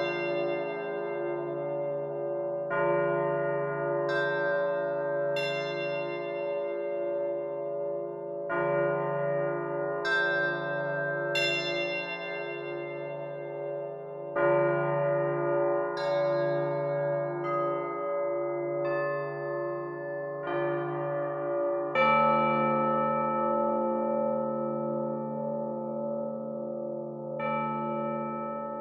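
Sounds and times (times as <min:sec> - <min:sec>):
bells in 17-tone equal temperament: 0:00.0 - 0:28.7.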